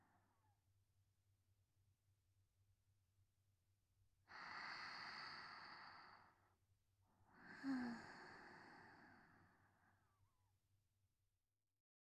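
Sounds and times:
sleeping breath: 4.3 - 6.4, 7.3 - 10.2.

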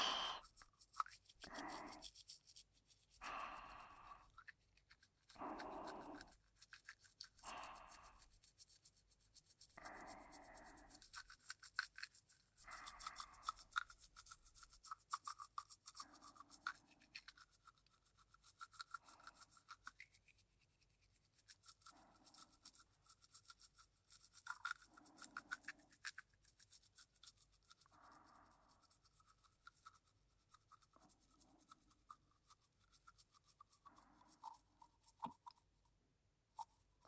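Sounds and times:
toothbrush scrubbing back and forth across the middle teeth: 0.0 - 35.9, 36.5 - 37.0.

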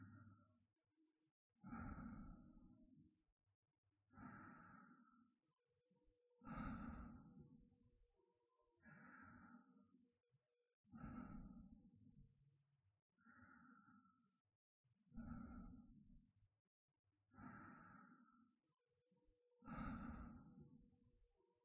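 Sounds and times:
person breathing in sleep: 1.6 - 2.9, 4.1 - 5.4, 6.4 - 7.6, 8.8 - 9.9, 10.9 - 11.8, 13.2 - 14.4, 15.2 - 16.1, 17.3 - 18.6, 19.6 - 20.9.

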